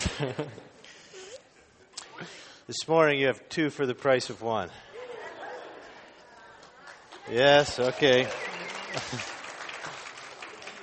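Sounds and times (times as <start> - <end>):
laughter: 0.0 - 1.8, 4.8 - 10.8
speech: 0.2 - 0.8, 2.2 - 4.9, 7.3 - 9.3
a few people clapping at a morning church service: 6.4 - 10.8.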